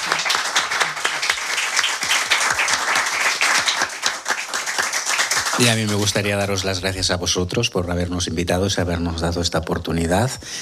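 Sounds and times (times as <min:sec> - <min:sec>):
audience applause: 0:00.0 - 0:06.9
speech: 0:05.6 - 0:10.5.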